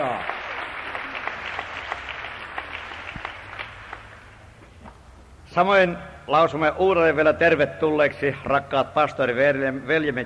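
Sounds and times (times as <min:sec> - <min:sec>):
applause for a church choir: 0:00.0 - 0:04.6
speech: 0:05.6 - 0:10.2.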